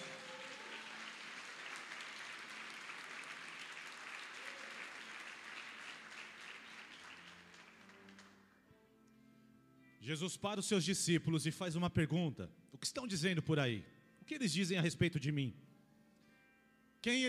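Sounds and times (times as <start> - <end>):
audience applause: 0.0 - 8.5
speech: 10.0 - 15.7, 17.0 - 17.2.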